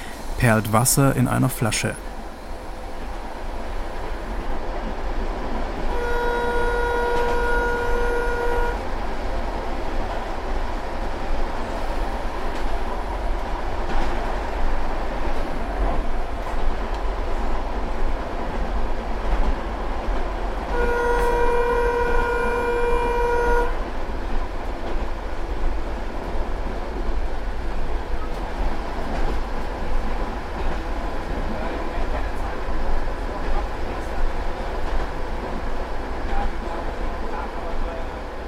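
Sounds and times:
narrow-gauge train rumbling and clattering: 0.0 - 38.4
speech: 0.4 - 2.1
narrow-gauge train horn tooting: 5.9 - 8.9, 20.7 - 23.8.

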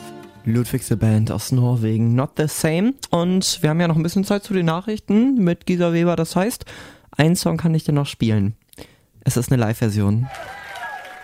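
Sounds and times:
speech: 0.4 - 10.6
cheering voices: 10.2 - 11.2
live concert crowd applauding: 10.2 - 11.2.

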